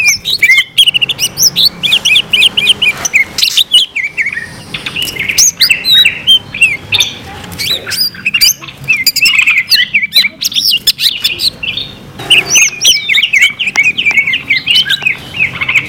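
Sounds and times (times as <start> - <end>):
greater green leafbird song: 0.0 - 15.8.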